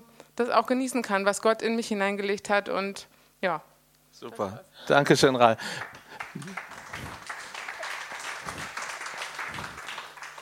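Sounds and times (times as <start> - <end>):
speech: 0.4 - 6.7
weak applause: 5.6 - 10.4.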